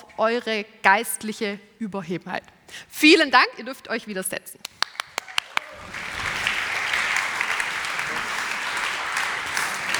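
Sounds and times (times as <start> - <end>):
speech: 0.2 - 4.9
audience applause: 4.9 - 9.9.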